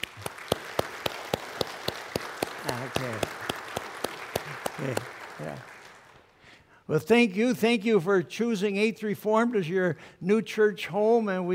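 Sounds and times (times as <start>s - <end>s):
church congregation applauding to welcome new members: 0.0s - 6.5s
speech: 4.8s - 5.7s, 6.9s - 11.5s.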